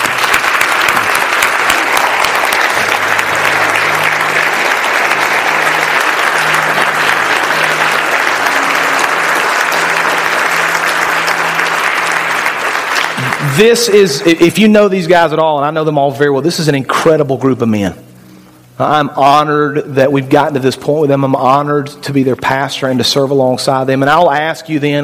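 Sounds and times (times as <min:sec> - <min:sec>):
audience applause: 0:00.0 - 0:14.3
speech: 0:13.6 - 0:18.1, 0:18.8 - 0:25.0.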